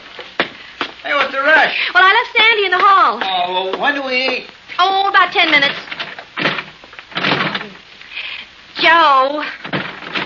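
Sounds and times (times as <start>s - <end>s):
speech: 1.3s - 5.9s, 8.9s - 9.6s
locked door being tried and rattled: 5.5s - 7.7s, 9.6s - 10.2s.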